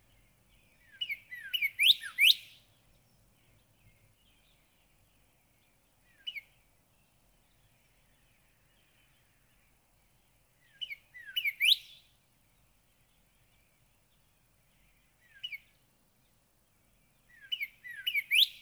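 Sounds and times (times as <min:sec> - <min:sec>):
Northern cardinal song of bright slurred whistled notes: 0:00.8 - 0:02.6, 0:10.7 - 0:12.0, 0:17.3 - 0:18.6.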